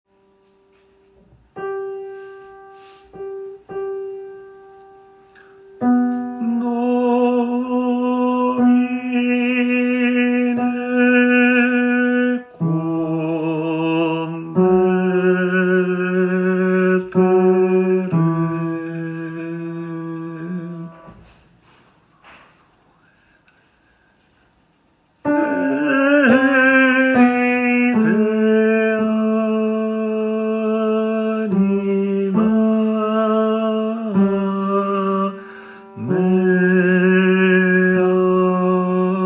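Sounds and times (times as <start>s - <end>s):
tenor singing: 5.8s - 21.1s, 25.2s - 39.2s.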